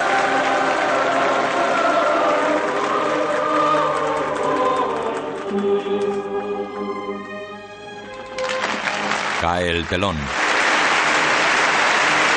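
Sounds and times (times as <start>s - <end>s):
theatre audience standing ovation applause: 0.0s - 5.4s, 8.4s - 12.3s
music: 0.0s - 12.3s
speech: 9.6s - 10.6s.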